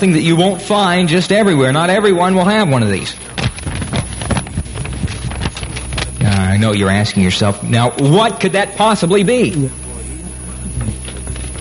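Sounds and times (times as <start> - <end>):
speech: 0.0 - 3.3, 6.6 - 9.8
two pieces of paper being handled: 2.8 - 7.2, 10.7 - 11.5.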